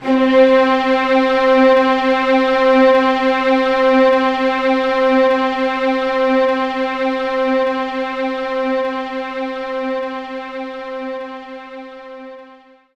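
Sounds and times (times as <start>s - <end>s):
string loop in C3: 0.0s - 12.6s.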